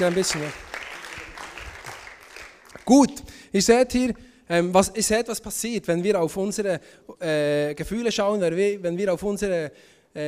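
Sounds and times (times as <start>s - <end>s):
speech: 0.0s - 0.6s, 2.9s - 10.2s
audience applause: 0.0s - 2.9s.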